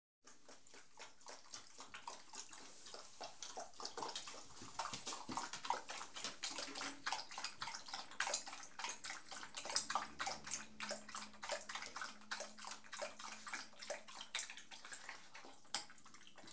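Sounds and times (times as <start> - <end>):
Beagle lapping water: 0.2 - 16.5.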